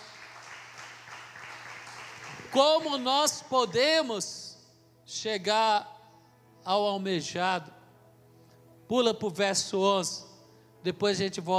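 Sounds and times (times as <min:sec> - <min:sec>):
audience applause: 0:00.0 - 0:02.6
speech: 0:02.5 - 0:04.5, 0:05.1 - 0:05.9, 0:06.6 - 0:07.8, 0:08.9 - 0:11.5.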